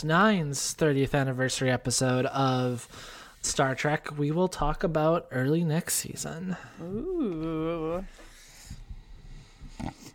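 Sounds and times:
speech: 0:00.0 - 0:08.2
person snorting and clearing throat and nose: 0:09.7 - 0:10.1.

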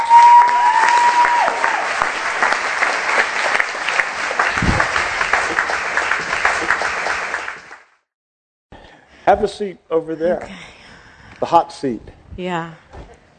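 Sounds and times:
audience applause and cheering: 0:00.0 - 0:07.9
speech: 0:09.3 - 0:10.7, 0:11.4 - 0:12.8.

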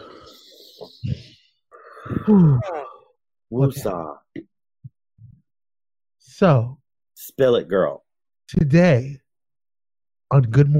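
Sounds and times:
person taking a deep breath in and out: 0:00.0 - 0:02.9
person sighing loudly: 0:00.0 - 0:03.1
speech: 0:02.3 - 0:02.8, 0:03.5 - 0:04.2, 0:06.4 - 0:09.2, 0:10.3 - 0:10.7.

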